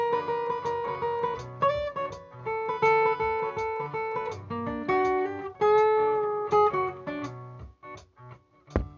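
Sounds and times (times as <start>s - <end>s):
guitar solo harmony: 0.0s - 8.9s.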